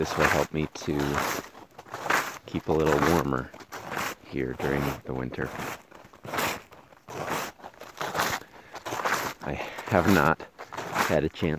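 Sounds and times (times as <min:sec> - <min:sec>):
speech: 0:00.0 - 0:01.5, 0:02.5 - 0:03.6, 0:04.3 - 0:06.4, 0:09.5 - 0:10.5, 0:11.1 - 0:11.5
snowshoes crunching snow underfoot: 0:00.0 - 0:11.5.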